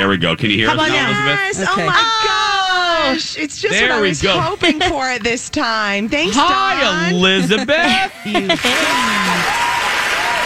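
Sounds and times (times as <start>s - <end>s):
speech: 0.0s - 2.5s, 3.1s - 9.6s
voice calling out: 0.7s - 3.0s
laughter: 0.8s - 3.2s, 6.6s - 9.8s
large crowd applauding at a fair: 8.5s - 10.4s.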